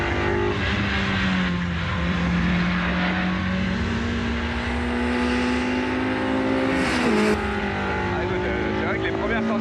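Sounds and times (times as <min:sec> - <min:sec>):
race car engine at high revs through gear changes: 0:00.0 - 0:09.5.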